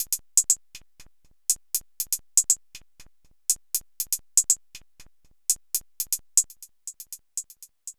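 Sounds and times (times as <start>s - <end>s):
electronic hi-hat beat: 0.0s - 7.9s.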